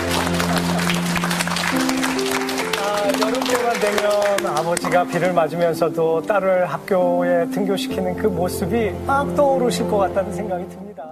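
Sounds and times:
applause: 0:00.0 - 0:05.4
speech: 0:03.8 - 0:11.0.

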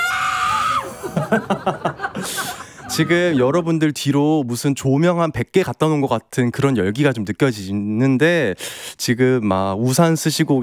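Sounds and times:
outdoor crowd outside the KBS building screaming and shouting: 0:00.0 - 0:01.2
outdoor crowd laughing and cheering in short rhythmic bursts: 0:00.4 - 0:03.7
speech: 0:01.3 - 0:10.6.

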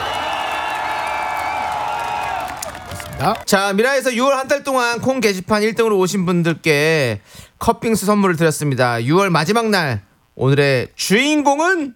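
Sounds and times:
audience applause and cheering: 0:00.0 - 0:03.5
speech: 0:03.2 - 0:11.9.

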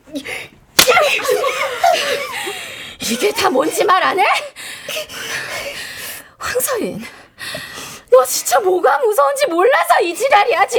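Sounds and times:
slap to the face: 0:00.8 - 0:01.2
speech: 0:03.2 - 0:05.1, 0:06.6 - 0:07.6, 0:08.2 - 0:10.7.

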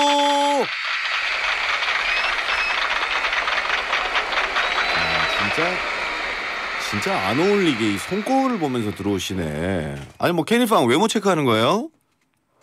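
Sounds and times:
applause: 0:00.0 - 0:09.8
speech: 0:06.9 - 0:12.0.

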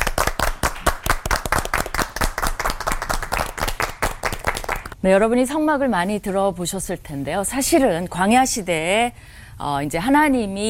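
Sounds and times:
audience applause welcoming a speaker: 0:00.0 - 0:05.0
speech: 0:05.0 - 0:10.6.

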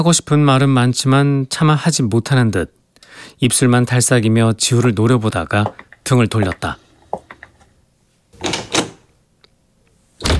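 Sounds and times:
speech: 0:00.0 - 0:06.8
room door slamming shut: 0:08.4 - 0:09.0, 0:10.2 - 0:10.3.

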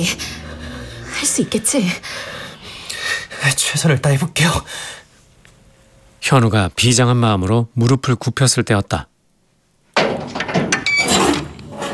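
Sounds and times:
speech: 0:00.0 - 0:00.4, 0:01.3 - 0:02.4, 0:03.4 - 0:05.0, 0:06.2 - 0:09.1
creaking door opening: 0:10.0 - 0:11.9.

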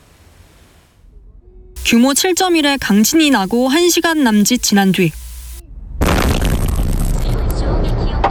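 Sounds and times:
speech: 0:01.9 - 0:05.2
shopping mall explosion: 0:05.8 - 0:08.2.

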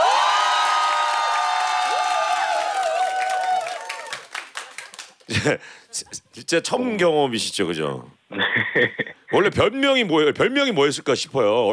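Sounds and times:
studio audience of 70 people cheering: 0:00.0 - 0:05.0
speech: 0:05.3 - 0:11.7.

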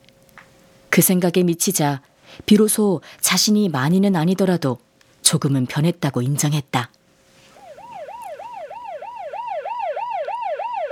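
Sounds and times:
speech: 0:01.0 - 0:07.0
emergency vehicle siren: 0:07.6 - 0:10.9.

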